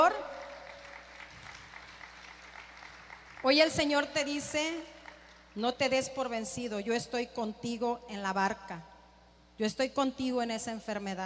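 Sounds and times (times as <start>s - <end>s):
audience applause: 0.3s - 3.4s
speech: 3.4s - 5.0s, 5.6s - 8.9s, 9.6s - 11.2s.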